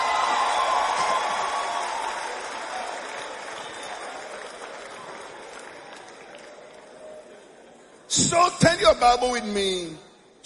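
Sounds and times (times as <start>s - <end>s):
audience clapping: 0.0s - 7.1s
speech: 8.2s - 10.4s.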